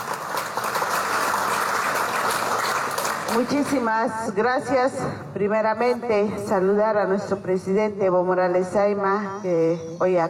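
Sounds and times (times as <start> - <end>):
audience applause: 0.0 - 3.5
speech: 3.3 - 10.2.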